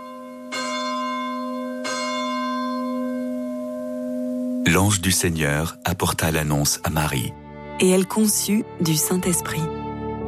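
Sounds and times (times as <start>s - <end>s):
church bells ringing: 0.0s - 7.2s
speech: 4.7s - 9.8s.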